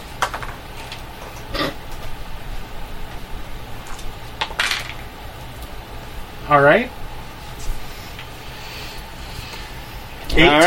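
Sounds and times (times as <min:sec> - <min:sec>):
dice being rolled: 0:00.2 - 0:00.6
speech: 0:06.5 - 0:07.0, 0:10.4 - 0:10.6.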